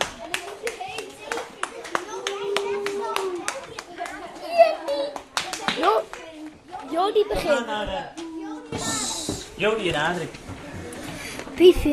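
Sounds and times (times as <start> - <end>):
children clapping: 0.0 - 6.5
young voices chattering and calling out: 0.0 - 11.9
speech: 7.1 - 8.2, 9.6 - 10.5, 11.6 - 11.9.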